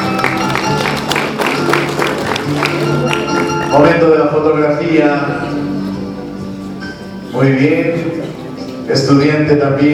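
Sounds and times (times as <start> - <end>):
audience clapping: 0.0 - 3.7
speech: 3.7 - 5.5, 7.4 - 8.3, 8.9 - 9.9.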